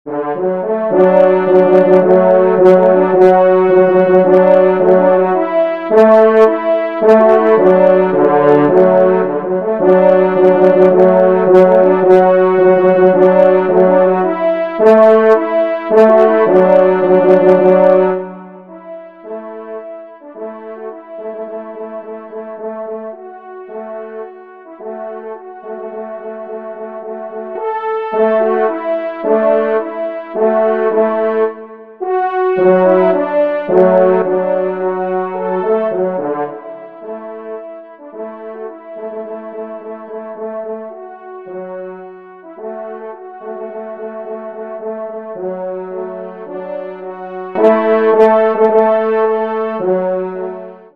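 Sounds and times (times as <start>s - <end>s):
horn: 0.0s - 50.9s.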